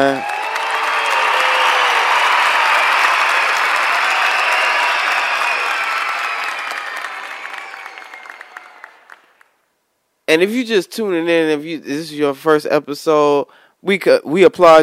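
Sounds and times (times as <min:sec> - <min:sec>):
speech: 0:00.0 - 0:00.3, 0:10.3 - 0:14.8
applause: 0:00.0 - 0:09.6.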